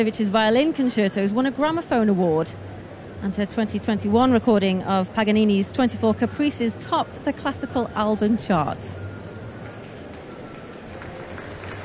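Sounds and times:
speech: 0.0 - 9.1
concert audience applause: 9.6 - 11.8.

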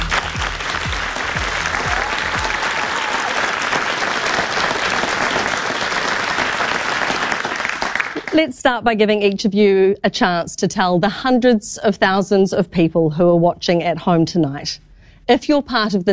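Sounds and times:
studio audience applauding party leaders at a televised multi-party debate: 0.0 - 8.4
speech: 8.4 - 16.1.

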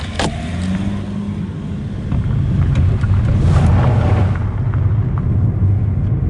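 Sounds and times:
car engine rumbling driving towards town near Gore: 0.0 - 6.2
road noise: 0.0 - 6.2
wind buffeting the microphone: 1.9 - 6.2.

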